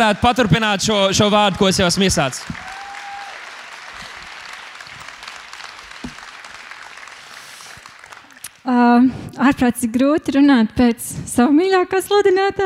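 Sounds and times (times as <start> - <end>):
speech: 0.0 - 2.6, 9.0 - 12.6
audience applause welcoming a speaker: 0.0 - 8.6.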